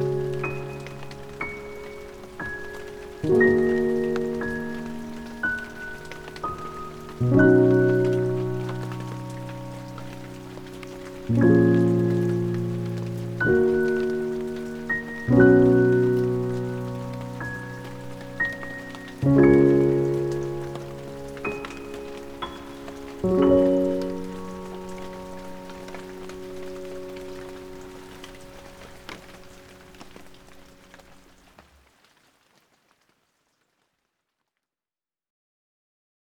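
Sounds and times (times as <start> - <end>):
calming piano music: 0.0 - 31.5
rain: 0.0 - 34.4.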